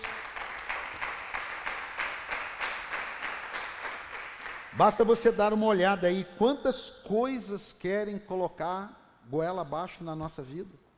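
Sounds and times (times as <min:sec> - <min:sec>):
audience applause: 0:00.0 - 0:04.7
speech: 0:04.8 - 0:10.8.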